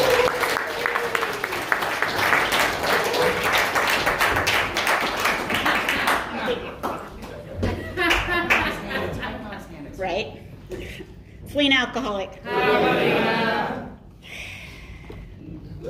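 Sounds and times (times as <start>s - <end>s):
audience applause welcoming a speaker to the stage: 0.0s - 7.4s
laughter: 5.4s - 9.7s
speech: 11.9s - 12.4s
crowd voices: 12.5s - 14.0s.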